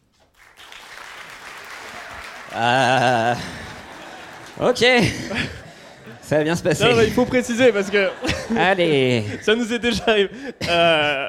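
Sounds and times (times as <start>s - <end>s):
audience applause: 0.3s - 9.2s
laughter: 1.8s - 11.2s
speech: 2.5s - 3.6s, 4.6s - 11.2s.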